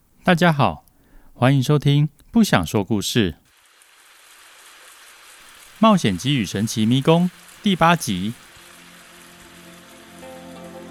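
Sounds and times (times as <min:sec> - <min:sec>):
speech: 0:00.3 - 0:00.8, 0:01.4 - 0:03.4, 0:05.8 - 0:08.4
rain falling on a tent: 0:03.4 - 0:10.8.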